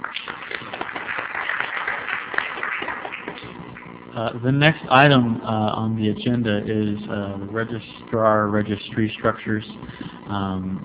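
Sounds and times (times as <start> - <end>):
audience applause: 0.0 - 3.9
speech: 4.2 - 10.8.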